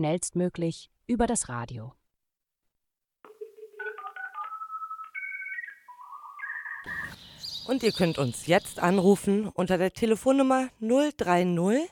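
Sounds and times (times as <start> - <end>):
speech: 0.0 - 2.0, 7.7 - 11.9
answering machine beep tone: 3.8 - 7.2.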